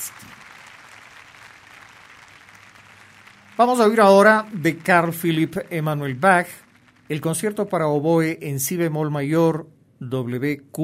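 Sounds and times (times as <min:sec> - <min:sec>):
concert audience applause for an orchestra: 0:00.0 - 0:08.6
speech: 0:03.6 - 0:10.8.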